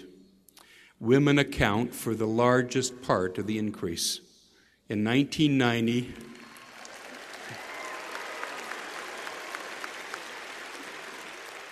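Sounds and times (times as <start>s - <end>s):
speech: 1.0s - 4.3s, 4.9s - 6.3s
women clapping at a graduation ceremony: 6.2s - 11.7s.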